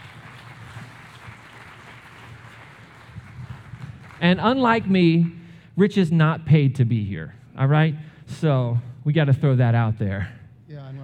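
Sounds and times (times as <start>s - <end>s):
audience applause welcoming a speaker to the stage: 0.0s - 5.2s
speech: 4.2s - 10.4s.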